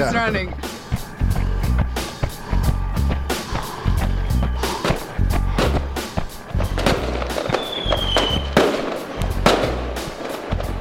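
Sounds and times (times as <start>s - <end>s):
speech: 0.0s - 0.7s
low rumbling backing: 0.0s - 10.7s
music beat: 0.0s - 10.7s
Fourth of July fireworks popping: 4.8s - 10.7s
gunshots: 6.8s - 10.7s.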